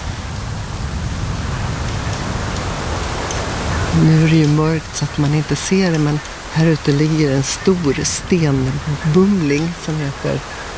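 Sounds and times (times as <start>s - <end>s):
gentle sea waves against stones: 1.6s - 10.7s
speech: 4.0s - 10.7s.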